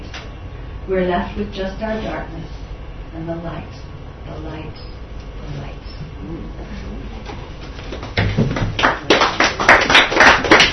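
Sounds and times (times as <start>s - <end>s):
speech: 0.9s - 8.6s
audience applause: 7.9s - 10.7s.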